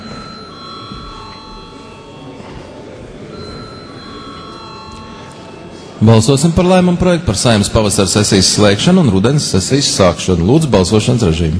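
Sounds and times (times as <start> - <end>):
chairman's bell ringing in parliament: 0.0 - 7.8
low murmur of a crowded hall: 0.0 - 11.5
speech: 6.0 - 11.5.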